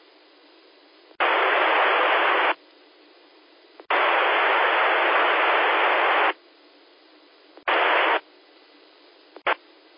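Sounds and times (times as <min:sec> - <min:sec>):
static bursts: 0:01.2 - 0:02.6, 0:03.8 - 0:06.4, 0:07.6 - 0:08.3, 0:09.4 - 0:09.6
weak radio signal in band-limited hiss: 0:01.2 - 0:02.6, 0:03.8 - 0:06.4, 0:07.6 - 0:08.3, 0:09.4 - 0:09.9.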